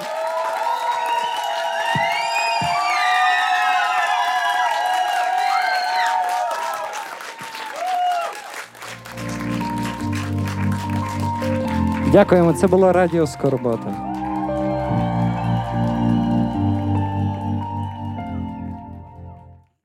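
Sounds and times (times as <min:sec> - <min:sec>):
high whistles and whoops: 0:00.0 - 0:08.5, 0:14.2 - 0:18.6
crowd applauding: 0:00.0 - 0:19.6
low music: 0:08.8 - 0:19.7
speech: 0:12.1 - 0:14.1.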